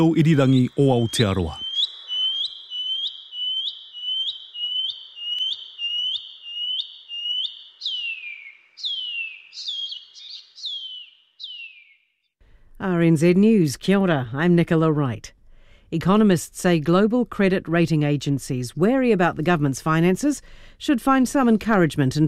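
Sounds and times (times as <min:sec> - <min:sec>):
speech: 0:00.0 - 0:01.6, 0:13.0 - 0:22.2
shining cuckoo call: 0:00.0 - 0:11.9.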